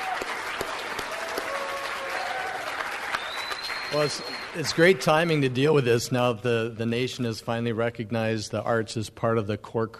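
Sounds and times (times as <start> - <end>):
audience applause: 0.0 - 5.5
speech: 3.9 - 9.9.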